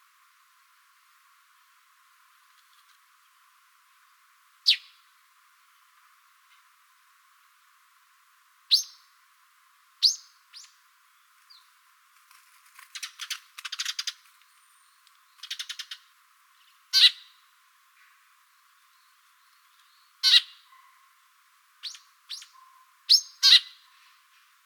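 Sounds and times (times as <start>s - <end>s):
sparrows chirping in the morning: 4.7s - 5.0s, 8.7s - 9.1s, 10.0s - 11.8s, 12.9s - 21.2s, 21.8s - 24.4s.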